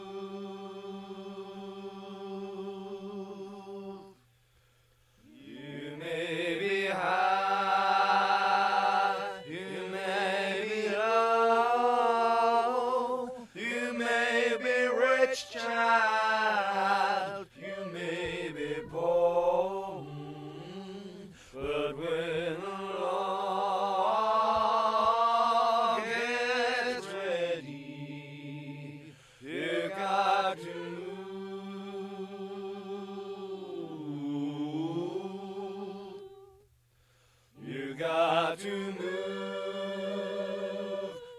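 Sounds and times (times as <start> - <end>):
bass and tenor voices singing: 0.0 - 4.2, 5.2 - 36.6, 37.6 - 41.3.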